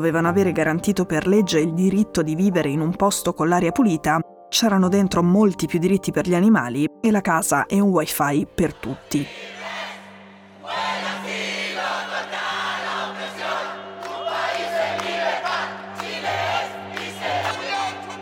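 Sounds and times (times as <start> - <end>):
speech: 0.0 - 9.6
Chilean crowd cheering after referendum: 9.3 - 18.2.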